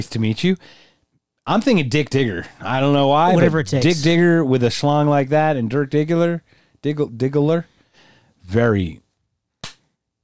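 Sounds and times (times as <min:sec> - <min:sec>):
speech: 0:00.0 - 0:00.9, 0:01.5 - 0:07.7, 0:08.5 - 0:09.0
slow hand clapping: 0:09.6 - 0:09.8.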